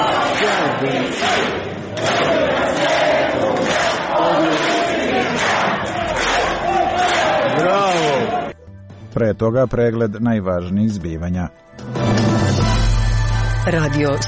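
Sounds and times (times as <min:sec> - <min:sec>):
theatre audience at the Croatian National Theatre in Split shouting in unison: 0:00.0 - 0:08.5
speech: 0:00.8 - 0:02.8, 0:09.2 - 0:12.3, 0:13.6 - 0:14.2.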